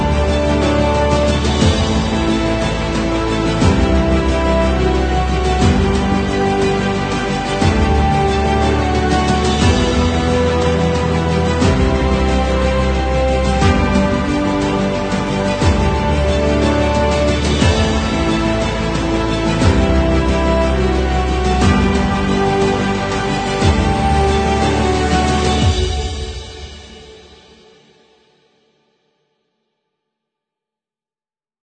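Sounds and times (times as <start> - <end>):
orchestra playing epic music: 0.0 - 27.3.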